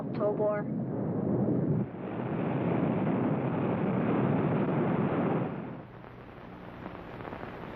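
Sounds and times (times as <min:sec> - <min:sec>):
speech: 0:00.2 - 0:00.8
rocket blast-off sound effect in a radio drama: 0:01.0 - 0:05.9.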